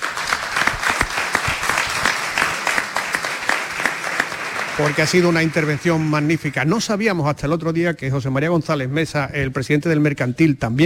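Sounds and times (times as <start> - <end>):
audience applause: 0.0 - 6.9
speech: 4.8 - 10.8.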